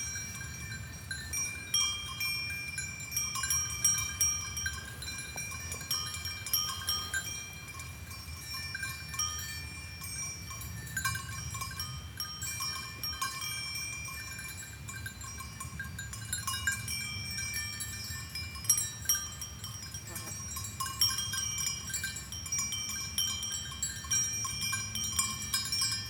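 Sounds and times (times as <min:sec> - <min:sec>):
sheep bells in Romainmotier Switzerland: 0:00.0 - 0:26.0.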